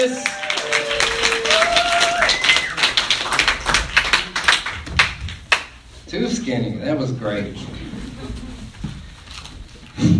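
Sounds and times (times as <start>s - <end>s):
speech: 0.0s - 0.4s, 6.1s - 7.8s
audience applause: 0.0s - 5.6s.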